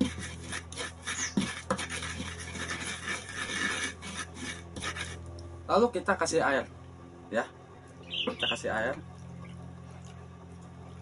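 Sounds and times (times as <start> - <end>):
grinding spices and salt by hand: 0.0 - 5.3
speech: 5.7 - 7.6, 8.2 - 9.1.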